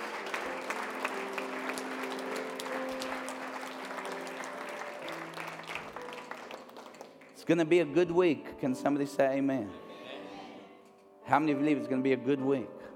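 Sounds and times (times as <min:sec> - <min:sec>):
audience clapping: 0:00.0 - 0:07.6
speech: 0:07.5 - 0:09.8, 0:11.3 - 0:12.8.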